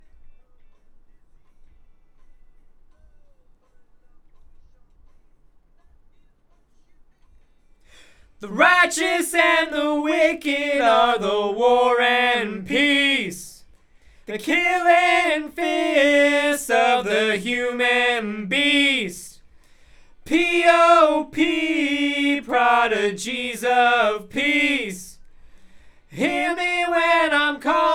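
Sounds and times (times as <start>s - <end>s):
background vocals: 7.9s - 27.9s.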